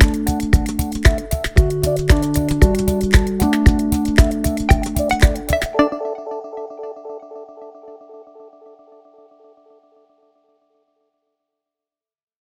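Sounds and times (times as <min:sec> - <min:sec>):
elevator music: 0:00.0 - 0:08.3.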